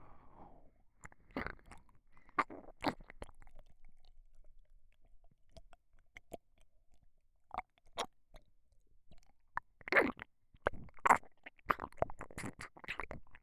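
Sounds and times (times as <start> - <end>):
ASMR ear licking sounds: 1.1 - 3.7, 10.0 - 13.4.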